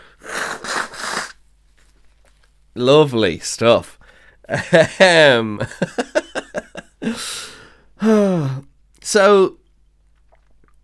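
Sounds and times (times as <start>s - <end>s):
person blowing nose: 0.0s - 1.4s
speech: 2.8s - 6.2s, 7.0s - 9.6s.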